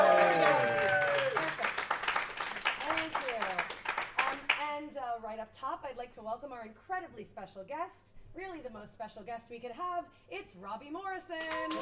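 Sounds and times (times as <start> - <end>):
audience scattered clapping at a live comics read-through show: 0.0 - 4.6, 11.4 - 11.7
speech: 5.3 - 11.7.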